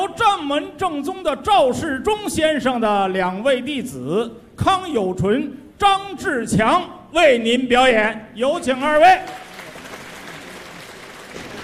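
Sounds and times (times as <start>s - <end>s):
speech: 0.1s - 9.4s
audience applause at a Chinese crosstalk show: 9.3s - 11.6s.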